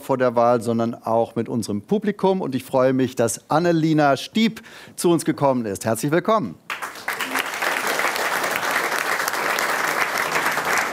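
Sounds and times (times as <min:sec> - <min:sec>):
speech: 0:00.0 - 0:06.7
studio audience applause: 0:06.7 - 0:10.9.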